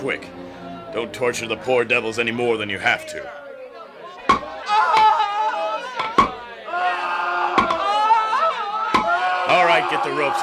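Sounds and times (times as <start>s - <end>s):
speech: 0.0s - 3.4s, 9.6s - 10.4s
crowd murmuring and calling out: 0.0s - 10.4s
hammering nails into wood: 4.3s - 5.1s, 7.6s - 7.8s.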